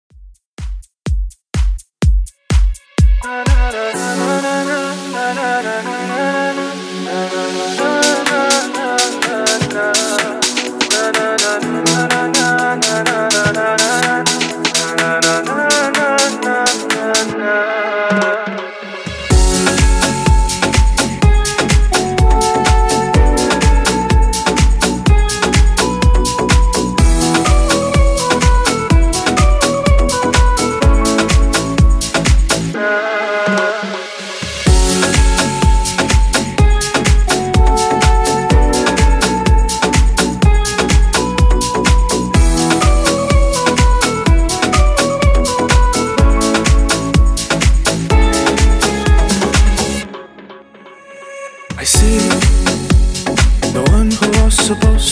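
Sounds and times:
clean club house music at 125 BPM: 0.3s - 17.4s, 18.1s - 50.7s, 51.8s - 55.1s.

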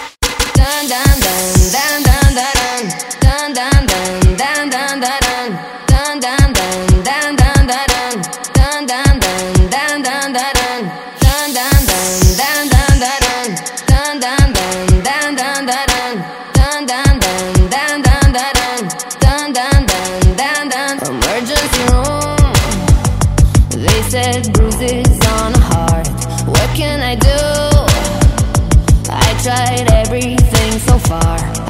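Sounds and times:
Top40 pop music: 0.4s - 31.6s.

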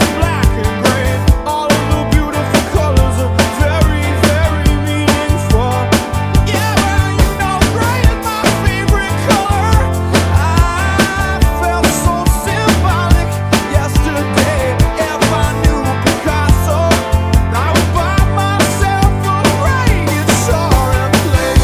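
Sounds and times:
90s pop rock music: 0.0s - 21.6s.

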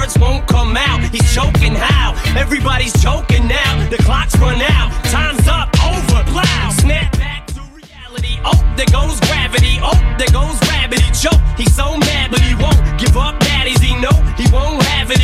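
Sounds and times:
hip hop drum beat at 86 bpm: 0.0s - 15.2s.

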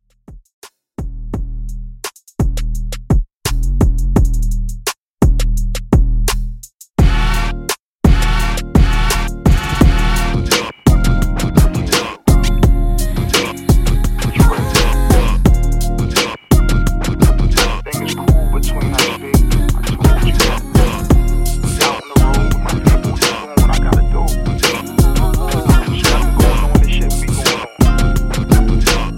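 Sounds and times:
old school drum beat: 0.2s - 29.1s.

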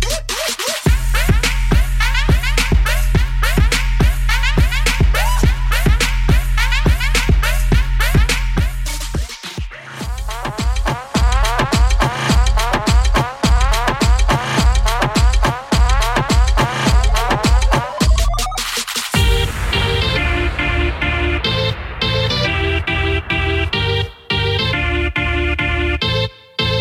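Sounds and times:
moombahton music: 0.0s - 26.7s.

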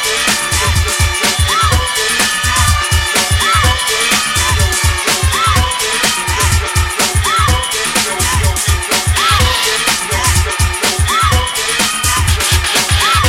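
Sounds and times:
80s hip house drum machine beat: 0.0s - 13.2s.

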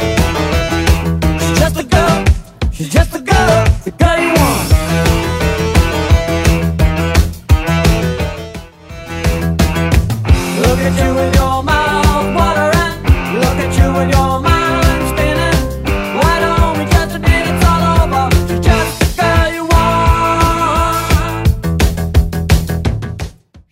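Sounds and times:
80s drum beat at 172 bpm: 0.0s - 23.7s.

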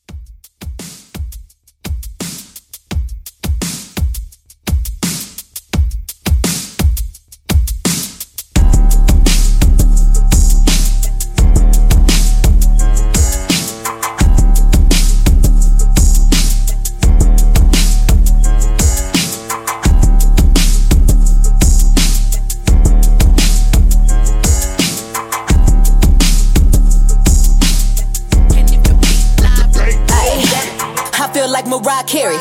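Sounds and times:
mixshow drum beat: 0.0s - 31.4s.

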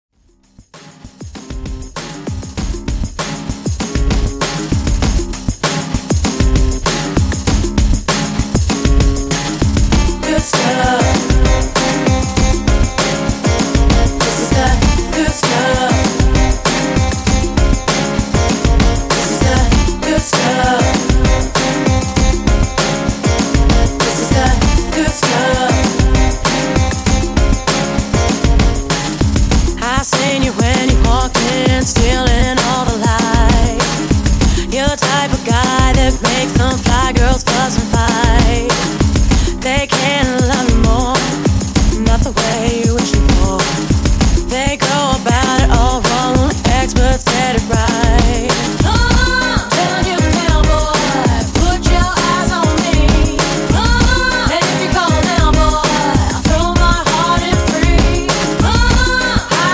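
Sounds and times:
1990s RnB music at 98 BPM: 0.4s - 59.7s.

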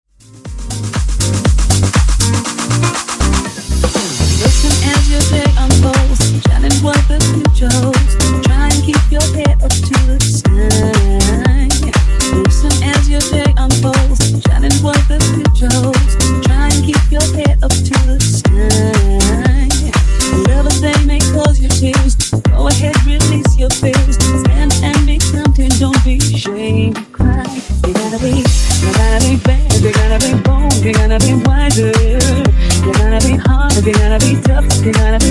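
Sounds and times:
disco funk remix music: 0.1s - 35.2s.

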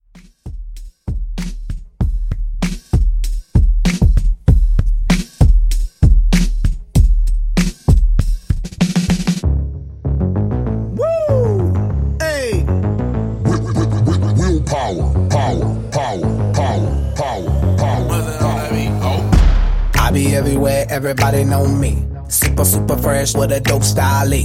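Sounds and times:
hip hop music: 0.1s - 24.4s.

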